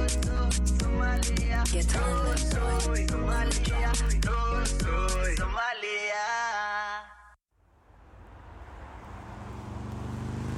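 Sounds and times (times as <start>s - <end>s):
brief burst of music: 0.0s - 7.2s
motorcycle riding toward the listener waiting to turn left: 8.1s - 10.5s.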